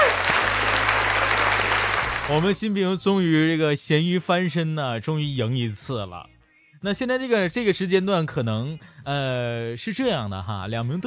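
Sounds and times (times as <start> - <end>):
crowd applause: 0.0 - 2.8
speech: 2.3 - 11.0.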